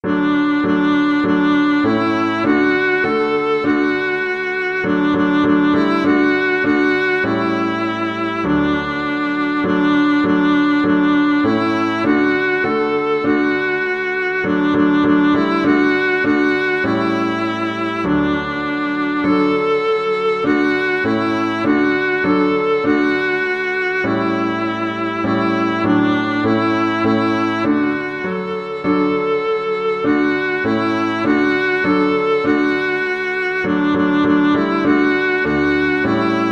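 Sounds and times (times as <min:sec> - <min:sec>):
viola: 0:00.0 - 0:36.5.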